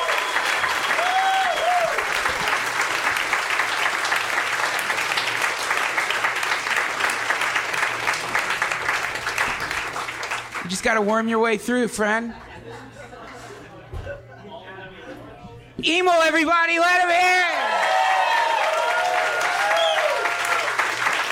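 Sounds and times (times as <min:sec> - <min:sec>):
whistles: 0:00.0 - 0:01.7
crowd applauding: 0:00.0 - 0:11.1, 0:17.3 - 0:21.3
speech: 0:10.8 - 0:13.0, 0:15.8 - 0:17.7
laughter: 0:12.2 - 0:15.4.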